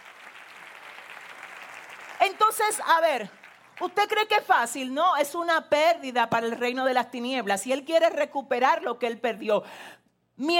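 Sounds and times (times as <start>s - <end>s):
audience applause: 0.0s - 2.7s
speech: 2.2s - 10.5s.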